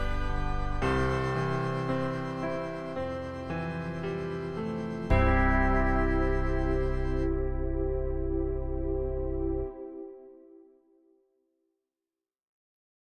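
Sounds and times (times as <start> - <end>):
backing music: 0.0 - 10.2.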